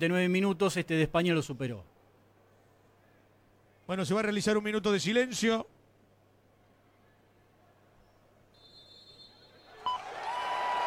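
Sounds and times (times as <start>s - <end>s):
speech: 0.0s - 1.9s, 3.9s - 5.8s
stadium crowd applause after minute's silence: 9.6s - 10.8s.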